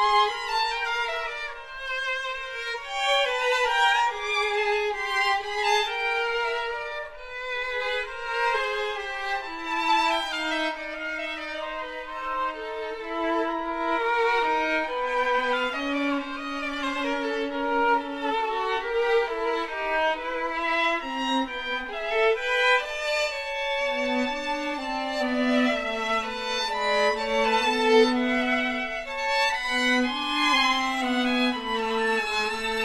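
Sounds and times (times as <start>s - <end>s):
string quartet playing: 0.0s - 32.8s.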